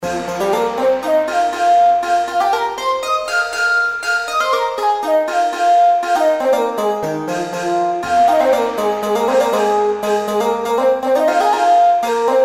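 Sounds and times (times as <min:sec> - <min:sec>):
outro background music: 0:00.0 - 0:12.4.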